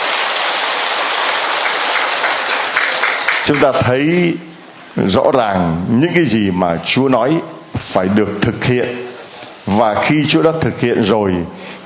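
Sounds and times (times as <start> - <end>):
large crowd applause: 0.0 - 3.8
speech: 3.5 - 9.1, 9.7 - 11.8.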